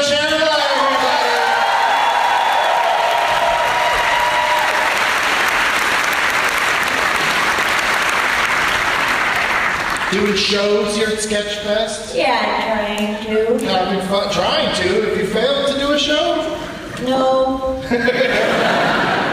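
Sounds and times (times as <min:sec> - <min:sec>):
whoops and cheers: 0:00.6 - 0:05.2
crowd clapping: 0:00.7 - 0:10.9
speech: 0:10.1 - 0:18.7
laughter: 0:17.8 - 0:19.3.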